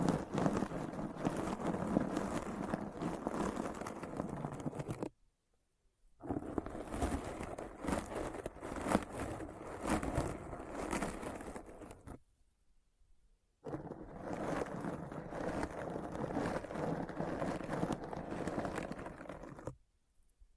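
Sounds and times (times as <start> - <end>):
gritty scraping with crackles and clicks: 0.0 - 5.1, 6.2 - 12.2, 13.7 - 19.8.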